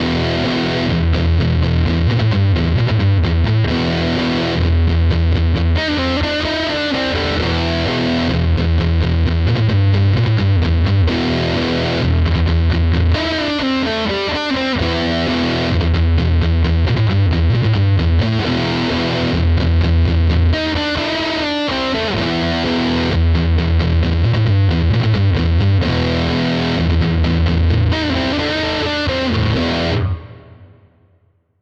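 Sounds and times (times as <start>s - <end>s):
electric guitar through Nux MG-30 with Super Reverb and EHX Muff: 0.0s - 31.4s.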